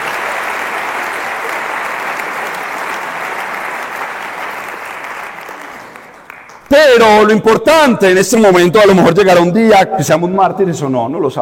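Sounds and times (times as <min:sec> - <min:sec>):
audience applause: 0:00.0 - 0:07.0
speech: 0:06.7 - 0:11.3.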